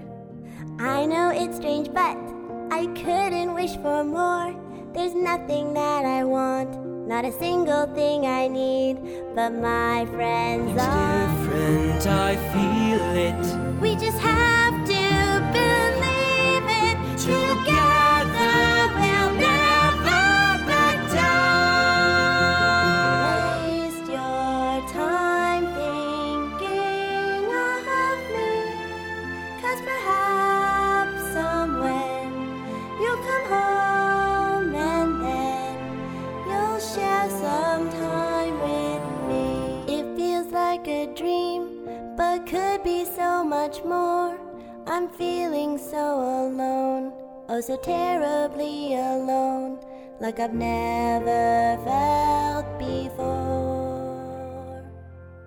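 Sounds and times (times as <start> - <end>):
person singing: 0.8 - 55.0.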